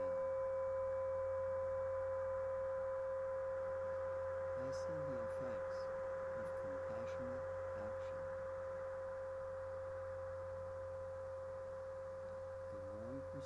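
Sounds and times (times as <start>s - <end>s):
gong: 0.0s - 13.4s.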